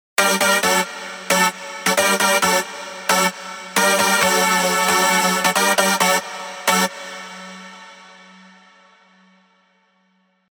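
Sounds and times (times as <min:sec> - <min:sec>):
rave synth stabs: 0:00.2 - 0:08.5.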